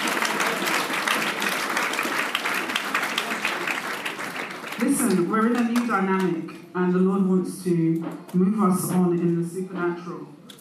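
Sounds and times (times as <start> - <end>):
people clapping: 0.0 - 6.4
speech: 5.1 - 10.4.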